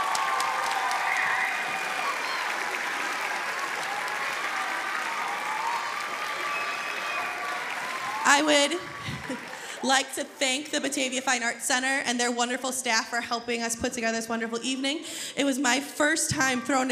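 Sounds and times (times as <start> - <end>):
concert audience applause: 0.0 - 10.3
speech: 8.4 - 16.9.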